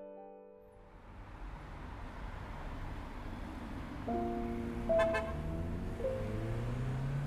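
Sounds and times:
highway traffic rushing past: 0:00.7 - 0:07.2
car horn toots: 0:04.8 - 0:05.7.

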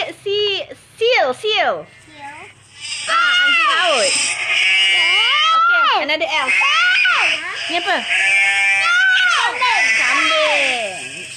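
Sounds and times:
speech: 0:01.3 - 0:02.0, 0:06.0 - 0:06.8, 0:07.7 - 0:08.3
sheep bleating: 0:03.3 - 0:11.3.

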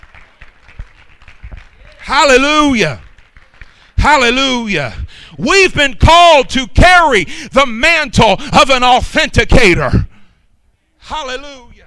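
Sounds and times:
audience hand clapping: 0:00.0 - 0:04.0
speech: 0:02.1 - 0:03.0, 0:04.0 - 0:10.1, 0:11.1 - 0:11.6.

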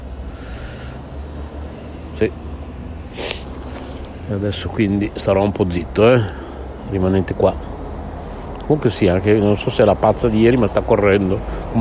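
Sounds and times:
bus approaching: 0:00.0 - 0:11.7
speech: 0:02.2 - 0:02.5, 0:04.3 - 0:07.7, 0:08.7 - 0:11.7.

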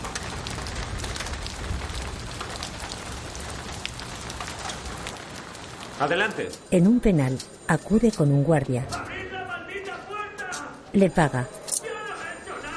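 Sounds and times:
water falling through a ceiling grate: 0:00.0 - 0:06.7
speech: 0:06.0 - 0:09.0, 0:10.9 - 0:11.6.

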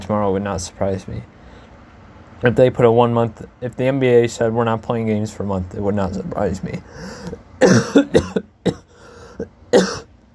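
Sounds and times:
speech: 0:00.1 - 0:01.4, 0:02.4 - 0:08.8
man coughing in a rough, uneven fit: 0:06.8 - 0:10.1.

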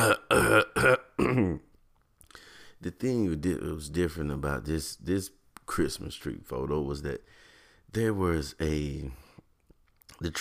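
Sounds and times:
speech: 0:00.0 - 0:01.6, 0:02.8 - 0:09.2, 0:10.2 - 0:10.3
person clearing throat: 0:00.0 - 0:01.7.

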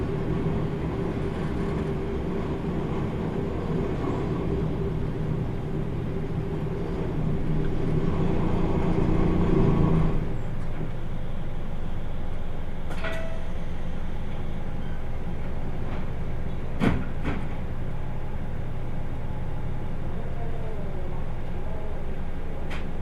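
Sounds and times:
Kyushu Odan limited express train engine and wheels rumbling on the Hōhi Line: 0:00.0 - 0:22.9
sharp clanks: 0:12.9 - 0:13.5.

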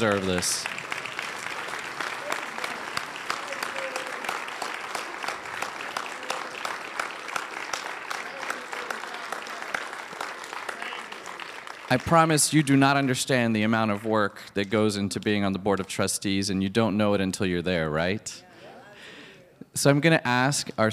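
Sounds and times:
speech: 0:00.0 - 0:00.8, 0:11.9 - 0:18.5, 0:19.8 - 0:20.9
audience clapping: 0:00.0 - 0:16.0.

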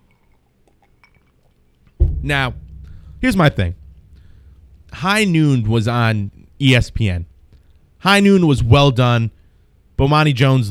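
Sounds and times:
person sipping a drink from a glass: 0:00.0 - 0:01.6
loud low thump: 0:02.0 - 0:09.0
speech: 0:02.2 - 0:02.6, 0:03.2 - 0:03.8, 0:04.9 - 0:07.3, 0:08.0 - 0:09.4, 0:10.0 - 0:10.6.

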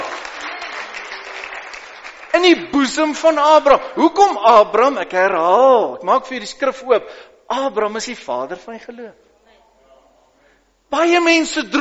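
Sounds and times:
audience clapping: 0:00.0 - 0:02.8
speech: 0:02.4 - 0:09.2, 0:10.9 - 0:11.7.

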